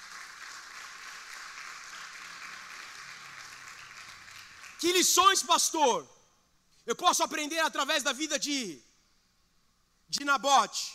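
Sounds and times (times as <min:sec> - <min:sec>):
audience applause: 0:00.0 - 0:04.9
speech: 0:04.8 - 0:06.2, 0:06.9 - 0:08.9, 0:10.1 - 0:10.9.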